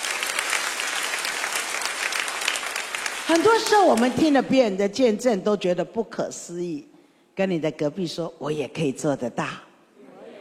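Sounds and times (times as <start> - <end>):
audience applauding: 0.0 - 4.2
speech: 3.3 - 9.7.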